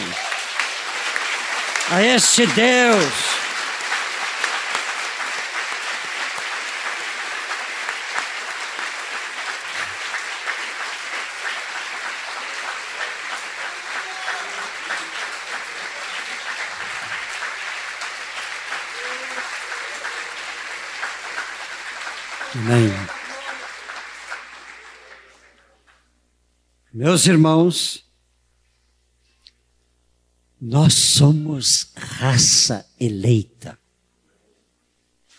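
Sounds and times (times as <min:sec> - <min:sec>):
audience applause: 0:00.0 - 0:25.8
speech: 0:01.9 - 0:03.4, 0:27.0 - 0:28.0, 0:30.8 - 0:33.8.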